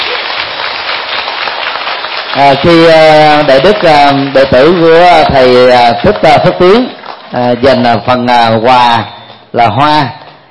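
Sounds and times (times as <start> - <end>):
audience applause: 0.0 - 8.0
speech: 2.4 - 10.2.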